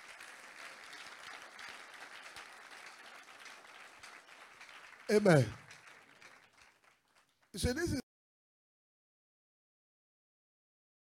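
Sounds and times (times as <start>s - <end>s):
audience clapping: 0.0s - 8.0s
speech: 5.1s - 5.6s, 7.6s - 8.0s.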